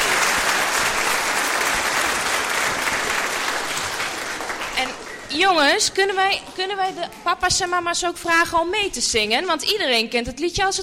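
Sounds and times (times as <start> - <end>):
audience applause for a performing group: 0.0 - 6.6
speech: 5.3 - 10.8.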